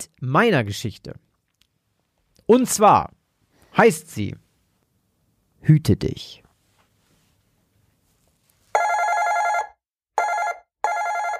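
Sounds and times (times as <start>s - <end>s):
speech: 0.0s - 1.3s, 2.5s - 3.2s, 3.8s - 4.4s, 5.6s - 6.4s
doorbell ringing: 8.8s - 11.3s.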